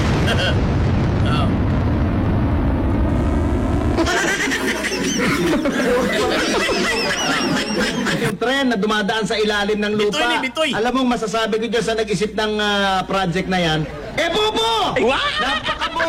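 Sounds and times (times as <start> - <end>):
rocket launch blast roaring rumble and crackling hiss: 0.0 - 8.3
laughter: 4.0 - 8.4, 12.9 - 16.0
speech: 8.6 - 16.0.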